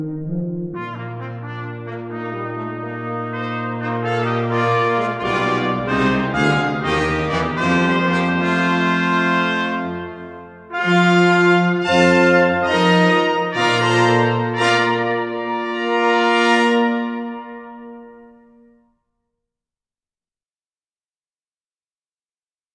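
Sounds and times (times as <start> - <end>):
festive fanfare: 0.3 - 18.4.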